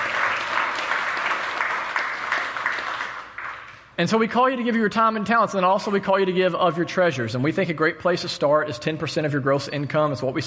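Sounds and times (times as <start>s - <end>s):
audience applauding: 0.0s - 3.8s
speech: 4.0s - 10.4s.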